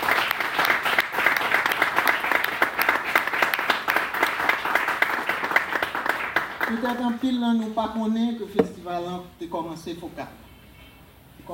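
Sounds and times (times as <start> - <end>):
audience applause: 0.0 - 7.0
speech: 6.8 - 10.4.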